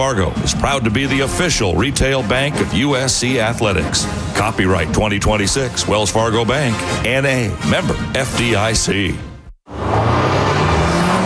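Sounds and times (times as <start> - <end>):
speech: 0.0 - 9.3
Audi car engine and road hum while driving: 9.7 - 11.2.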